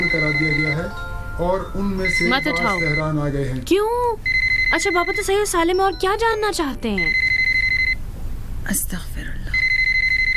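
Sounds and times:
telephone ringing: 0.0 - 3.3, 4.2 - 8.0, 9.6 - 10.3
speech: 0.4 - 7.2, 8.7 - 9.4.

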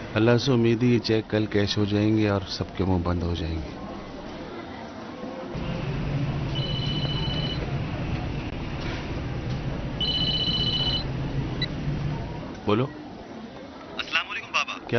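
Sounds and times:
noise: 0.0 - 14.9
speech: 0.2 - 3.8, 12.7 - 13.0
electronic telephone ringtone: 6.6 - 7.6, 10.0 - 11.1.

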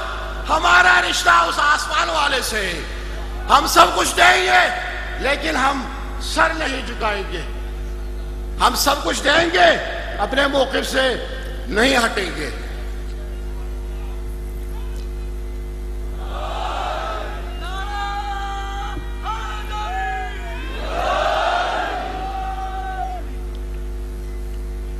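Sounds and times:
low electrical hum: 0.0 - 24.9
speech: 0.5 - 7.6, 8.6 - 12.6
crowd chanting a slogan: 16.2 - 17.5, 20.5 - 22.8.

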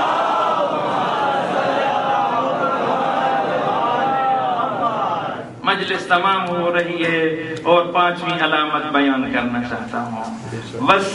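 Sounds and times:
worshippers at a majlis chanting a slogan in unison: 0.0 - 5.5
speech: 5.8 - 11.1.

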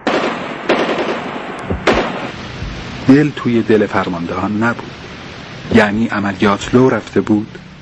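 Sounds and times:
machine gun fire in short bursts: 0.0 - 3.2
steady rumbling noise: 0.0 - 7.8
speech: 3.1 - 5.0, 5.8 - 7.7.

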